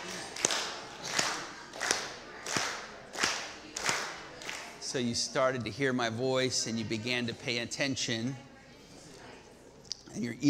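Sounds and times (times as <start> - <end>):
audience clapping in counted claps: 0.0 - 4.8
speech: 4.9 - 8.5, 10.2 - 10.4.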